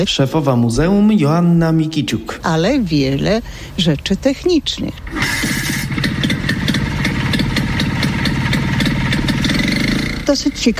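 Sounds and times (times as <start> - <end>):
speech: 0.0 - 5.3, 10.3 - 10.7
vintage car engine idling: 3.2 - 10.7.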